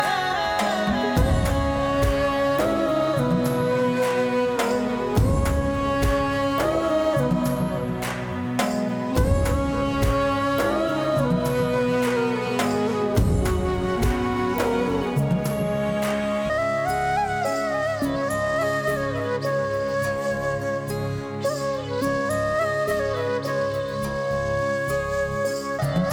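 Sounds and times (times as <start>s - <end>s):
Telugu folk music: 0.0s - 26.1s.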